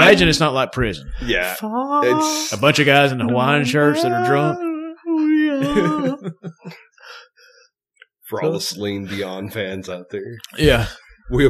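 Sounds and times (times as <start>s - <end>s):
speech: 0.1s - 4.7s, 5.6s - 7.2s, 8.3s - 11.4s
person vocally imitating a dying cat: 1.3s - 2.6s, 3.6s - 6.3s
laughter: 3.7s - 4.6s, 5.5s - 6.8s.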